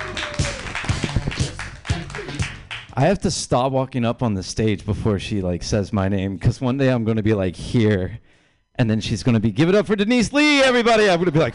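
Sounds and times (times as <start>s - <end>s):
scattered audience claps for a comedian: 0.0s - 3.0s
speech: 3.0s - 8.2s, 8.8s - 11.5s.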